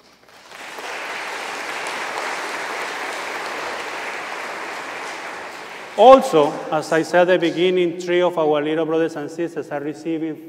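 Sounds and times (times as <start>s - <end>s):
audience applause: 0.0s - 6.9s
speech: 6.0s - 10.4s.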